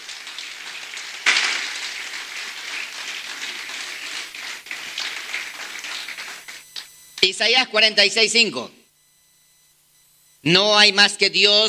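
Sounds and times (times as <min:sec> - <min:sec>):
audience applause: 0:00.0 - 0:06.6
speech: 0:07.2 - 0:08.8, 0:10.4 - 0:11.6.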